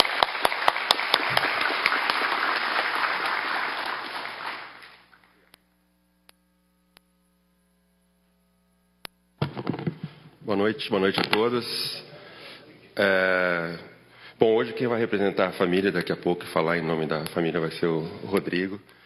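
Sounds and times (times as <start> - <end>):
audience applause: 0.0 - 5.1
speech: 10.6 - 12.0, 13.0 - 19.0.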